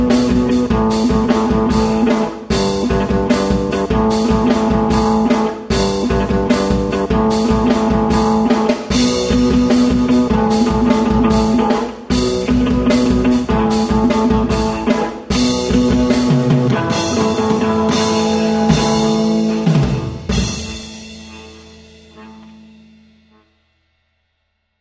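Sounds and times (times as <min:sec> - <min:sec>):
clean song drums: 0:00.0 - 0:23.3.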